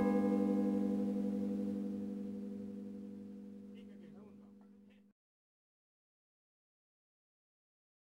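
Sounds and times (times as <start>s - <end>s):
bells ringing: 0.0s - 3.9s.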